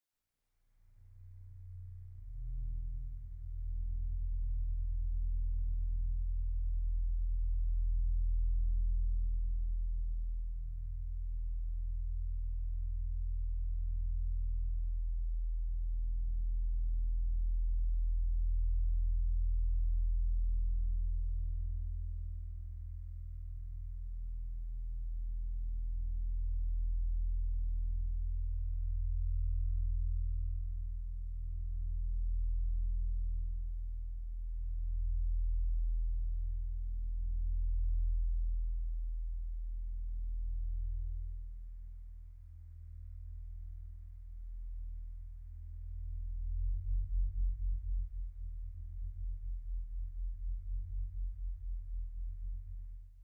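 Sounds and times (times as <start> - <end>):
hum: 0.7 - 53.2.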